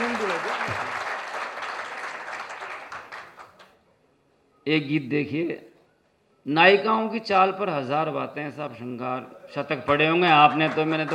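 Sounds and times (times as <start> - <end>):
audience applause at a live Hindi song and poetry performance: 0.0 - 3.7, 10.2 - 11.1
speech: 4.7 - 5.7, 6.4 - 11.1.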